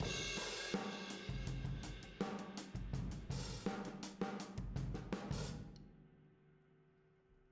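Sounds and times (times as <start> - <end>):
boogaloo drums outro in a room: 0.0 - 5.7.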